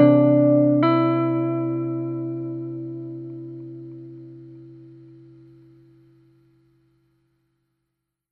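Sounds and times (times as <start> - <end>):
clean Gibson 335 electric guitar through Swart Atom amplifier: 0.0 - 7.0.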